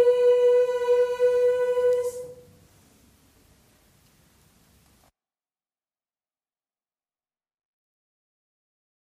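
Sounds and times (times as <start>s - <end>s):
soprano singing: 0.0s - 2.6s.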